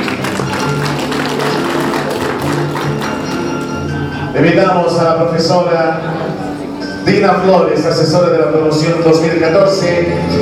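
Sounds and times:
audience applause: 0.0s - 3.5s
speech: 4.4s - 6.1s, 7.1s - 10.4s.

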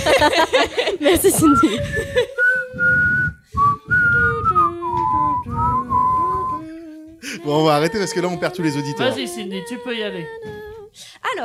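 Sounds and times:
laughter: 0.0s - 2.6s
speech: 0.2s - 3.0s, 7.5s - 10.6s
person whistling a meandering improvised tune: 1.4s - 6.9s.

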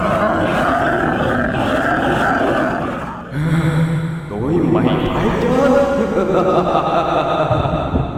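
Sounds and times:
eerie monstrous scream: 0.0s - 3.5s
deep growl: 0.0s - 4.0s
laughter: 4.8s - 8.1s.

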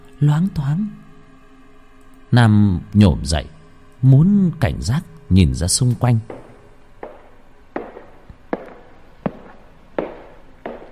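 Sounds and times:
speech: 0.2s - 1.0s, 2.3s - 6.4s
slow firm footsteps approaching a room door: 6.1s - 10.9s.

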